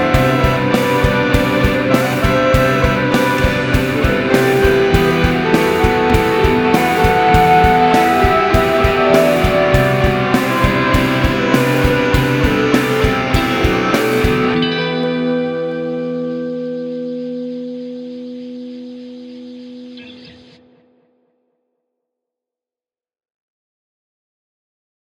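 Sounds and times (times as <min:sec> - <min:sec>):
remix music: 0:00.0 - 0:16.5.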